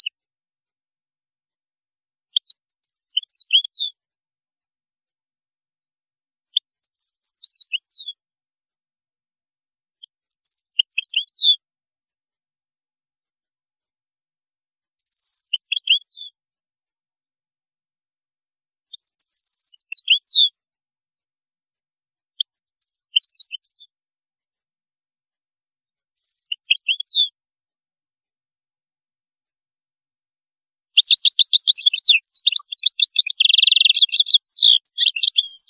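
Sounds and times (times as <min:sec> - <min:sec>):
European goldfinch twittering song: 0:02.4 - 0:04.0, 0:06.8 - 0:08.2, 0:10.3 - 0:11.6, 0:15.0 - 0:16.4, 0:19.0 - 0:20.5, 0:22.7 - 0:23.9, 0:26.0 - 0:27.3, 0:31.0 - 0:35.6.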